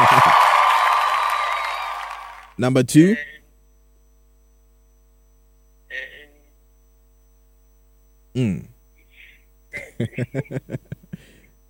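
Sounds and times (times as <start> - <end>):
laughter: 0.0 - 0.6, 9.8 - 11.2
canned applause and cheering effect: 0.0 - 2.6
speech: 2.6 - 3.4, 8.4 - 8.7, 9.8 - 10.9.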